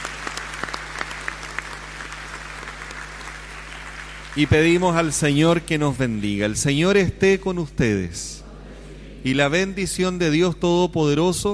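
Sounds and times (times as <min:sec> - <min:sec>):
applause: 0:00.0 - 0:05.8
speech: 0:04.4 - 0:08.4, 0:09.2 - 0:11.5.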